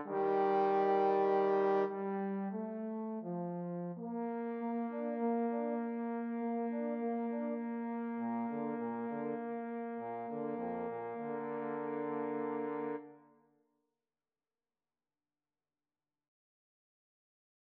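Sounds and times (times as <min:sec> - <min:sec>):
trombone trio: 0:00.0 - 0:13.0.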